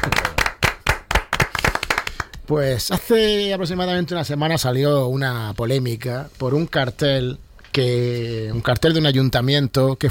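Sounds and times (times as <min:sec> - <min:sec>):
scattered hand claps for author Paco Roca: 0:00.0 - 0:02.5
speech: 0:02.5 - 0:10.0.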